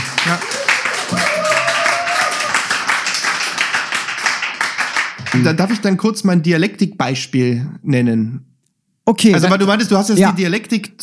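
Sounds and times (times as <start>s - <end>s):
audience clapping: 0.0s - 5.8s
speech: 0.2s - 0.5s, 1.1s - 1.3s, 5.3s - 8.5s, 9.1s - 11.0s.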